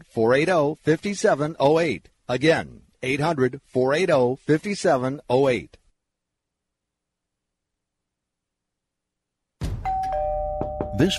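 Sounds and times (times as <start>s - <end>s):
speech: 0.0s - 5.8s, 11.0s - 11.1s
doorbell ringing at a front door: 9.8s - 11.1s.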